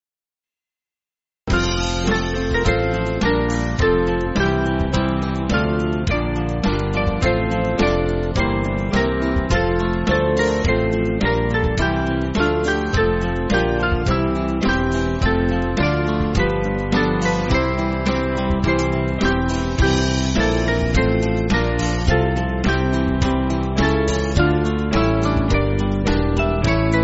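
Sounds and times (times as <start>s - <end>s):
backing music for churches: 1.5s - 27.0s.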